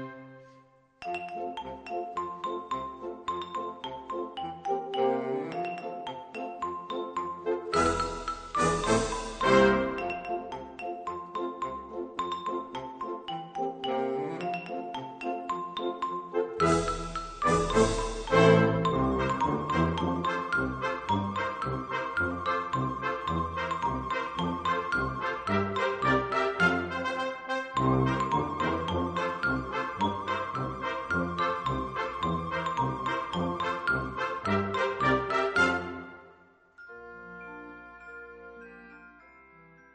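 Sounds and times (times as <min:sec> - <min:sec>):
pieces for percussion: 0:01.0 - 0:36.0.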